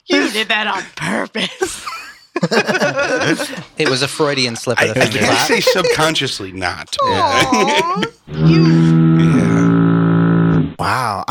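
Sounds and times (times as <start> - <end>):
speech: 0.3 - 9.6, 10.8 - 11.2
laughter: 1.4 - 8.2
foghorn blast: 8.3 - 10.6.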